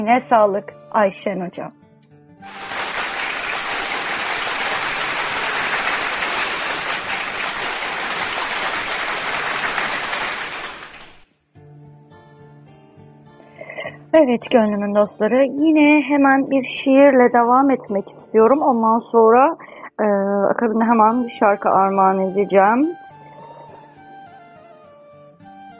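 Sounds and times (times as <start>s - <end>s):
speech: 0.0s - 1.8s, 14.2s - 23.0s
soft music: 0.0s - 4.4s, 11.6s - 25.7s
audience applause for a poet: 2.5s - 11.2s.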